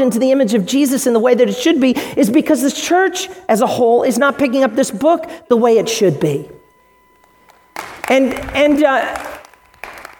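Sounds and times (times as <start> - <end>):
speech: 0.0 - 6.6, 8.1 - 9.2
audience applause: 9.2 - 10.1.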